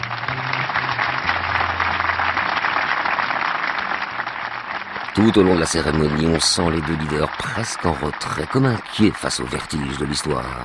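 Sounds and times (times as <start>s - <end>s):
crowd of spectators applauding: 0.0s - 10.6s
speech: 5.2s - 10.6s.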